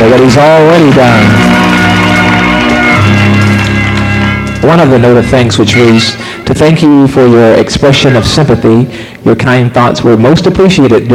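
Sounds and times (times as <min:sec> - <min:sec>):
speech: 0:00.0 - 0:01.7, 0:04.6 - 0:11.1
audience applause: 0:00.7 - 0:05.3.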